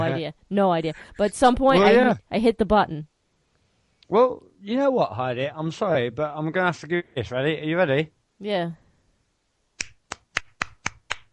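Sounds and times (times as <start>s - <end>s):
speech: 0.0s - 3.1s, 4.1s - 8.8s
hand clapping: 9.8s - 11.3s.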